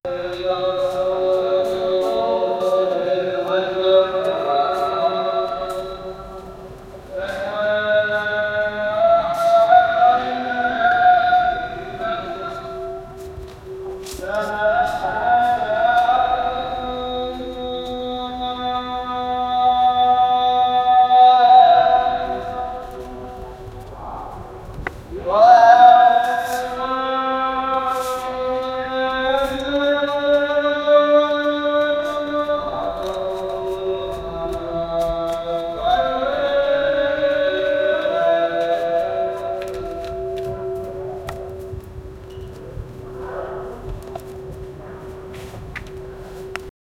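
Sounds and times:
azan call to prayer in a mosque: 0.0s - 46.7s.

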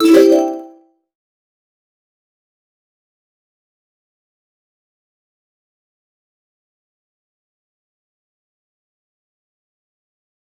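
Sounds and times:
ui menu select sound: 0.0s - 0.7s.

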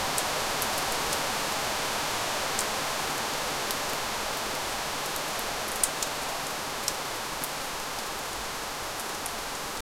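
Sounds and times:
late autumn rain: 0.0s - 9.8s.

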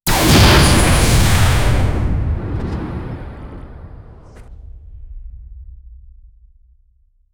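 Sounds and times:
science fiction plasma rifle shots: 0.0s - 4.5s.

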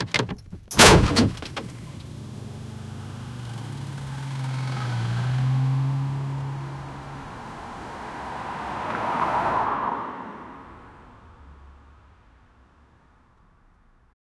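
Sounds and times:
head and cars crash: 0.0s - 14.0s.

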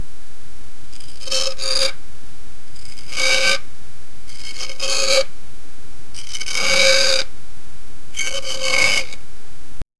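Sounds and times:
scratching: 0.9s - 2.0s, 2.8s - 3.6s, 4.3s - 5.3s, 6.2s - 7.3s, 8.2s - 9.2s.

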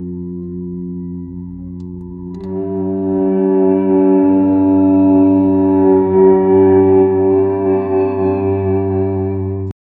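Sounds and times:
violin playing: 0.0s - 9.7s.

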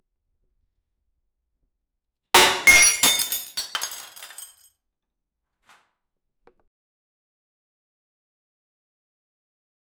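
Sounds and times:
thrown plate breaking: 2.4s - 4.6s.

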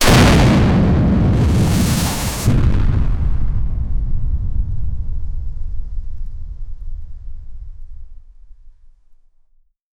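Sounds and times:
artillery shell flying: 0.0s - 5.4s.

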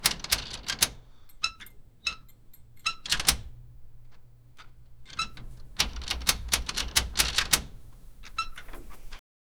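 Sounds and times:
mechanical technician repair sounds: 0.0s - 9.2s.

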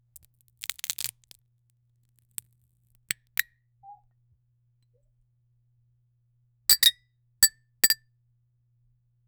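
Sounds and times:
person handling aluminum foil: 0.1s - 1.4s.

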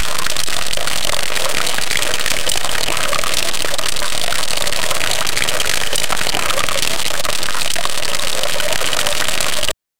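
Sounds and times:
squeezing juice: 0.0s - 9.8s.

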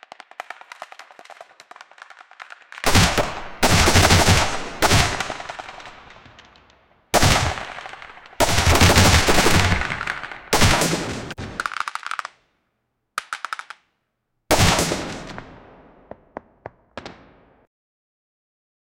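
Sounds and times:
pistol shots in a gunfight: 2.0s - 12.3s, 14.5s - 17.6s.

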